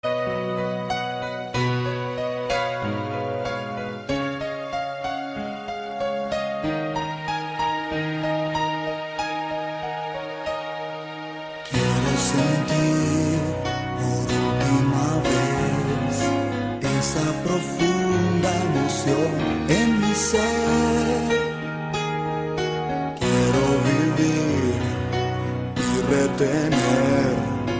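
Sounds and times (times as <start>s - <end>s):
piano: 0.0s - 27.7s.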